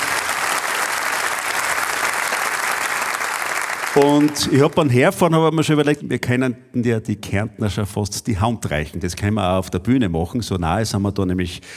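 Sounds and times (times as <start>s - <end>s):
audience applause: 0.0s - 5.0s
speech: 4.0s - 11.7s.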